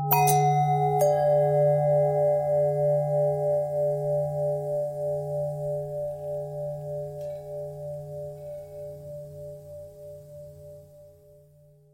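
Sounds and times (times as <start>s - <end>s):
long ringing bells: 0.1s - 8.5s.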